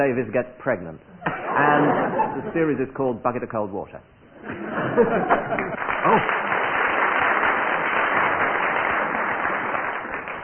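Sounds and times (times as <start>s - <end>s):
speech: 0.0s - 6.4s
laughter: 1.2s - 2.8s, 4.4s - 6.5s
studio audience applause: 5.3s - 10.4s.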